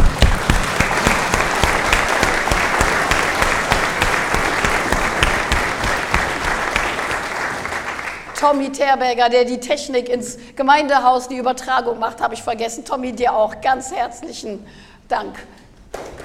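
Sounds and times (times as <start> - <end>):
crowd applause: 0.0 - 8.4
speech: 8.4 - 16.2.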